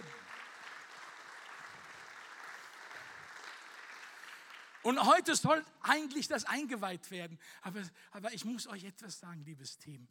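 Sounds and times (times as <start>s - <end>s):
audience applause: 0.0s - 5.1s
speech: 4.8s - 10.0s.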